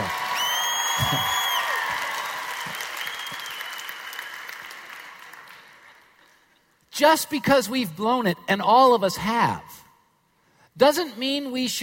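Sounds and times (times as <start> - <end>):
church congregation applause during a sermon: 0.0 - 6.2
speech: 7.0 - 9.8, 10.8 - 11.8.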